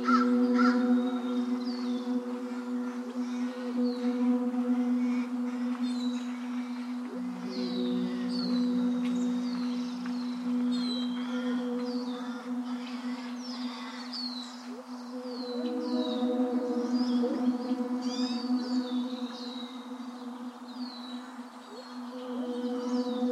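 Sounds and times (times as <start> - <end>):
birds chirping at Oaks Bottom along the Willamette River: 0.0 - 23.3
steady low hum: 0.0 - 23.3.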